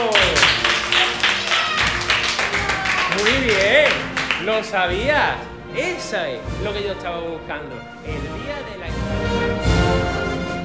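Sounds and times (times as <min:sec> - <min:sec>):
group applauding: 0:00.0 - 0:05.0
speech: 0:04.5 - 0:10.1.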